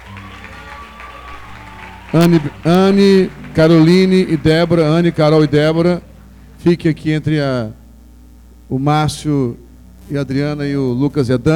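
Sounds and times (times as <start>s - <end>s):
audience applause: 0.0s - 5.9s
speech: 2.1s - 7.8s, 8.7s - 11.5s.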